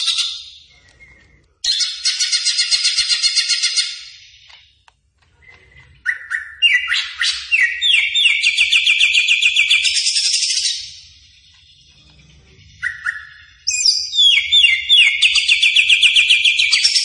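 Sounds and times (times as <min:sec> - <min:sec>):
leafbird singing: 0:00.0 - 0:17.0.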